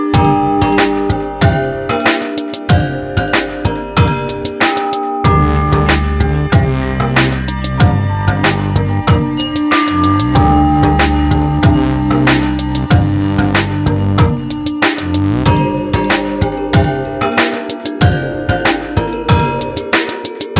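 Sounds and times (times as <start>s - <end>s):
java mallets popping: 0.2s - 20.5s.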